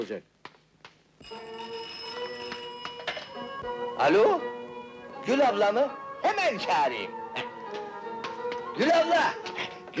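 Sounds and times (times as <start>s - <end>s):
speech: 0.0s - 0.4s, 3.6s - 4.6s, 5.2s - 7.5s, 8.8s - 9.7s
telephone bell ringing: 1.2s - 3.6s.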